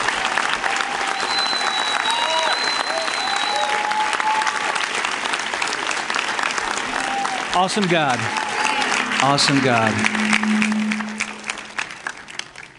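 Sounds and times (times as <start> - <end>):
church congregation clapping on its feet to welcome a guest: 0.0 - 8.6
speech: 7.6 - 8.4, 9.2 - 10.8.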